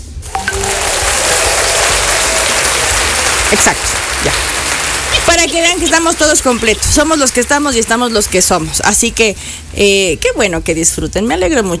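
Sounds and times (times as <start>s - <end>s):
canned applause: 0.3s - 9.4s
speech: 3.5s - 4.5s, 5.3s - 11.7s.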